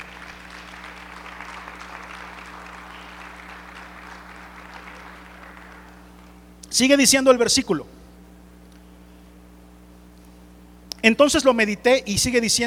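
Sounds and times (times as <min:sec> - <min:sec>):
audience applause: 0:00.0 - 0:06.3
low steady hum: 0:00.0 - 0:12.6
speech: 0:06.8 - 0:08.0, 0:11.0 - 0:12.6.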